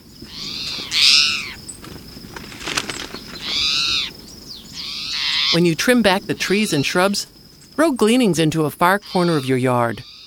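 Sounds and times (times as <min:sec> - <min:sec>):
steady hiss: 0:00.0 - 0:10.2
towhee calling: 0:00.0 - 0:10.2
speech: 0:05.5 - 0:10.1.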